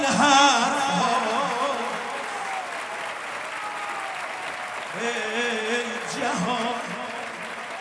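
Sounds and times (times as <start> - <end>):
crowd applause: 0.2 - 7.7.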